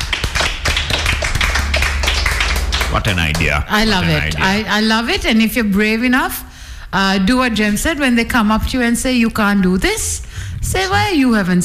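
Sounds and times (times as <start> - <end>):
audience applause: 0.0 - 4.6
speech: 2.9 - 11.6.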